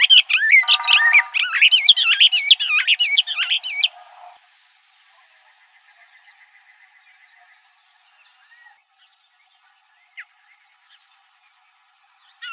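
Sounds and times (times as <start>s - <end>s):
mimid bird call: 0.1s - 4.4s.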